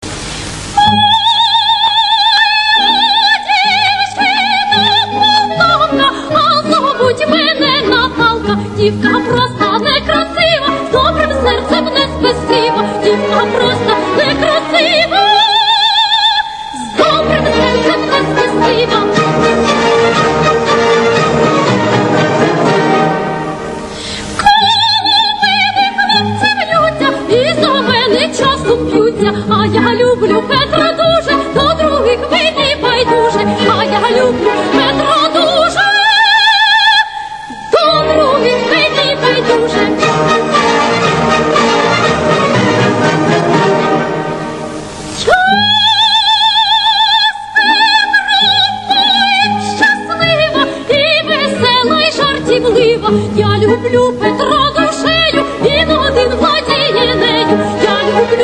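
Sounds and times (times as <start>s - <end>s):
Ukrainian opera aria: 0.1s - 58.4s.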